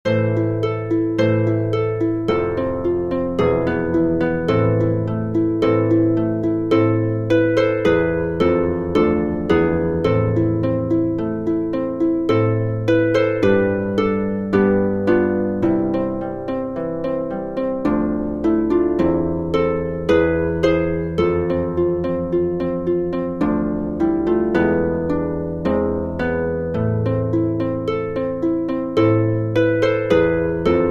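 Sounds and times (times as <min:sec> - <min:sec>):
instrumental music without vocal line: 0:00.0 - 0:30.8.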